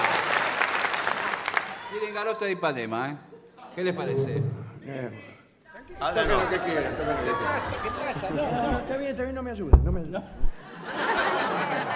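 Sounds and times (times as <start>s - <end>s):
audience clapping: 0.0s - 2.1s
speech: 2.2s - 5.3s, 5.9s - 11.0s
laughter: 6.0s - 9.2s, 10.2s - 11.9s.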